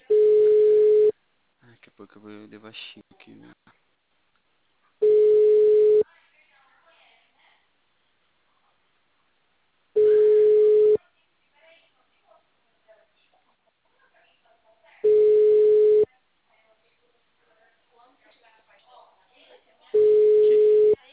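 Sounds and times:
ringback tone of an unanswered outgoing phone call: 0:00.0 - 0:01.1, 0:05.0 - 0:06.0, 0:10.0 - 0:11.0, 0:15.0 - 0:16.1, 0:20.0 - 0:21.0
speech: 0:02.2 - 0:03.8.

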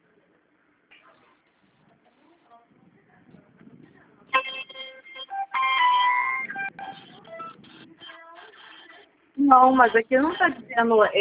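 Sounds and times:
phone ringing with melodic electronic ringtone: 0:04.4 - 0:09.0
speech: 0:09.5 - 0:11.1.

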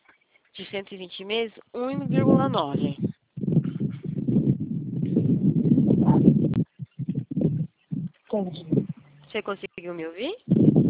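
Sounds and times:
speech: 0:00.6 - 0:03.1, 0:08.4 - 0:10.8
electric fan blowing: 0:01.8 - 0:09.6.

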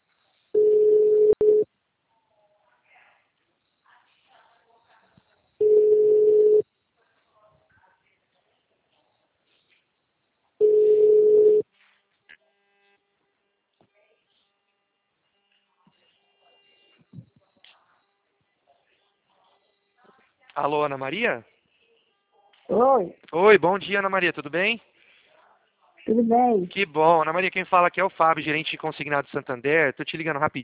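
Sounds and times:
telephone ringback tone while a call is placed: 0:00.6 - 0:01.6, 0:05.6 - 0:06.6, 0:10.6 - 0:11.6
speech: 0:20.6 - 0:21.5, 0:22.8 - 0:25.0, 0:26.1 - 0:30.6.

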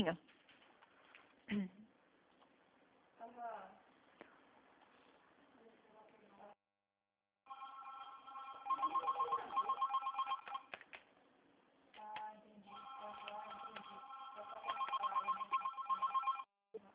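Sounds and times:
telephone ringing in trilling electronic bursts: 0:07.5 - 0:10.7, 0:12.7 - 0:16.5.

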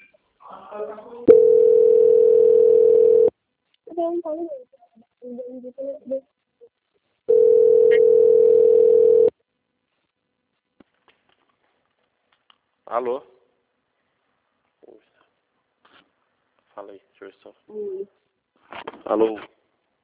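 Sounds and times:
speech: 0:00.7 - 0:01.9, 0:04.0 - 0:06.4, 0:12.9 - 0:13.4, 0:16.8 - 0:18.2, 0:18.8 - 0:19.5
telephone tone after dialing a number: 0:01.3 - 0:03.3, 0:07.3 - 0:09.3.

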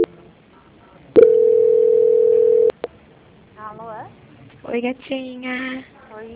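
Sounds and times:
telephone call transfer tone: 0:01.2 - 0:02.8
speech: 0:04.8 - 0:06.3.

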